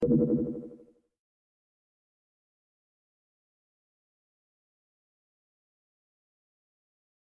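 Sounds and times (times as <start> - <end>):
update notification tone: 0.0 - 0.8.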